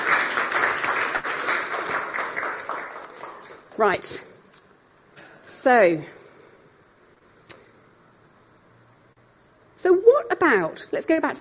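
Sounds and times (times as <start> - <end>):
round of applause: 0.0 - 3.7
speech: 3.8 - 4.3, 5.6 - 6.2, 9.8 - 11.3.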